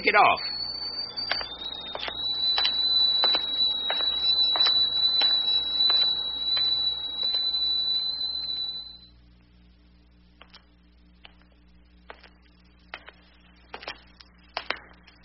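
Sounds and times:
tea kettle whistling on a hot plate: 0:00.0 - 0:09.1.

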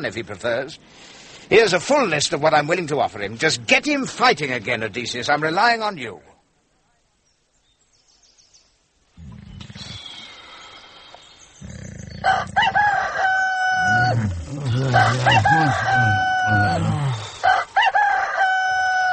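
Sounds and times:
speech: 0:00.0 - 0:06.3, 0:14.1 - 0:17.2
rooster crowing alarm: 0:12.2 - 0:19.1.

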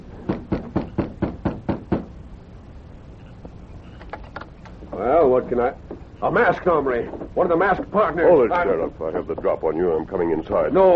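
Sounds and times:
knocking on a front door: 0:00.2 - 0:02.2
speech: 0:05.0 - 0:10.9.

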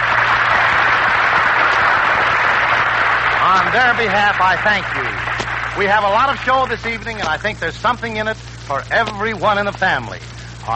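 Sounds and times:
studio audience applauding to welcome the radio audience: 0:00.0 - 0:08.3
faint low hum: 0:00.0 - 0:10.7
speech: 0:03.8 - 0:05.1, 0:05.8 - 0:10.7.

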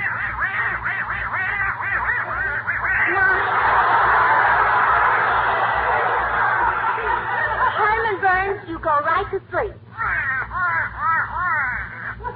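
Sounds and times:
duck quacking: 0:00.0 - 0:03.4, 0:10.0 - 0:12.2
laughter: 0:02.0 - 0:08.8.

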